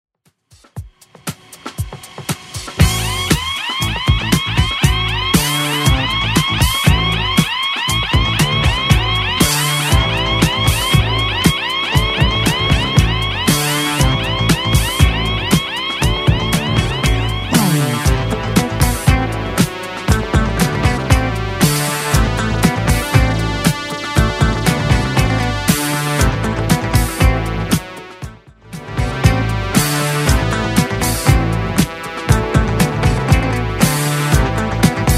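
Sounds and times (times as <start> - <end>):
70s DJ intro outro music: 0.5 - 35.1.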